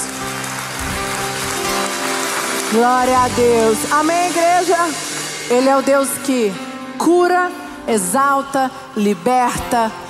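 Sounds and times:
audience applauding: 0.0 - 5.5
speech: 2.7 - 10.0.

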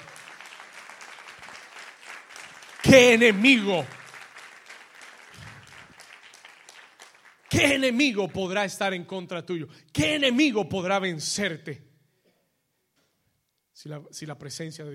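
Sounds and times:
loud audience applause: 0.0 - 8.2
speech: 2.9 - 4.0, 7.6 - 11.9, 13.8 - 14.9.

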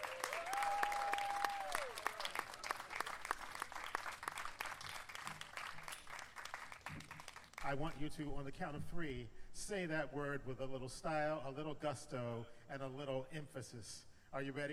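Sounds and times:
audience clapping at a morning event at People's Light: 0.0 - 7.7
speech: 7.7 - 14.7.

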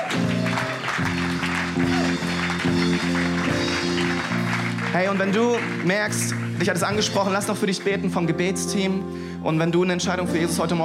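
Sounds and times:
crowd cheering: 0.0 - 7.1
crowd applauding: 0.0 - 8.1
sustained keyboard chords: 0.0 - 10.8
speech: 5.0 - 10.8.

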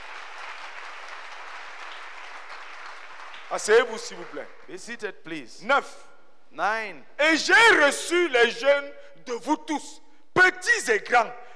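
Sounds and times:
congregation clapping during a church service: 0.0 - 5.0
speech: 3.5 - 11.4.

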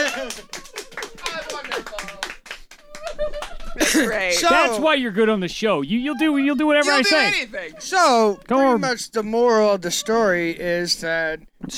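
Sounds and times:
round of applause: 0.0 - 4.6
laughter: 0.0 - 11.7
voices talking and calling: 0.0 - 11.7
speech: 3.9 - 11.7.

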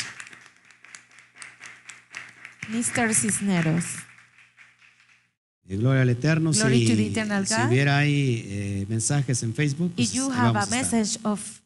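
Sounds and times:
audience applause: 0.0 - 5.3
speech: 2.7 - 4.1, 5.7 - 11.6.

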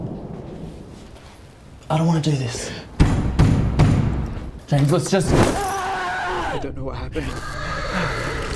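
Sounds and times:
speech: 1.9 - 2.9, 4.7 - 5.7, 6.6 - 8.3
knocking on a front door: 3.0 - 4.2.

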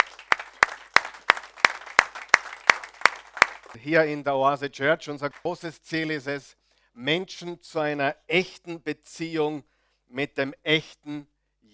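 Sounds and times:
audience applause: 0.0 - 3.8
speech: 3.8 - 11.7.

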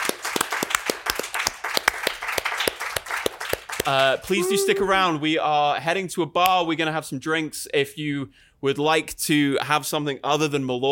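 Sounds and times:
audience applause: 0.0 - 5.2
speech: 3.9 - 10.8.

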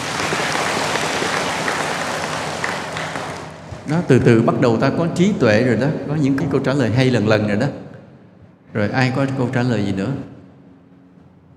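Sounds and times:
audience applause: 0.0 - 4.0
speech: 3.9 - 7.8, 8.7 - 10.4.

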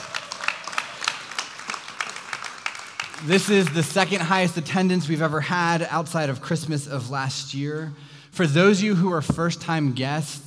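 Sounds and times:
audience clapping: 0.0 - 4.5
speech: 3.2 - 10.4.

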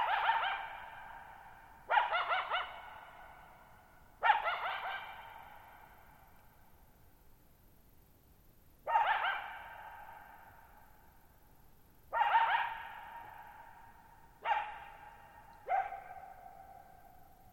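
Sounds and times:
coyote barking: 0.0 - 6.1, 8.8 - 10.4, 12.1 - 17.2.

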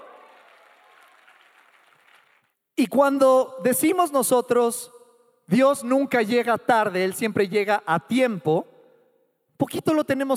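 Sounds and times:
crowd applause: 0.0 - 2.5
speech: 2.8 - 8.7, 9.6 - 10.3.

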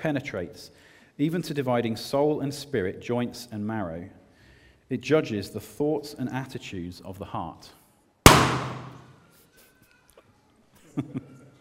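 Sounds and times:
speech: 0.0 - 4.2, 4.9 - 7.8, 11.0 - 11.3
balloon bursting: 8.3 - 9.1.

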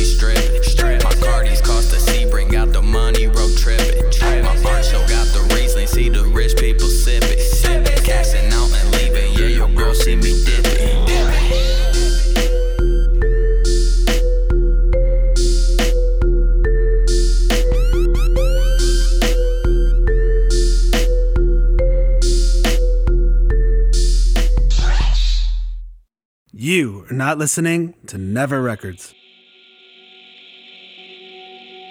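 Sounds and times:
hip-hop instrumental with heavy bass and synth melody: 0.0 - 25.0
speech: 27.1 - 29.2.

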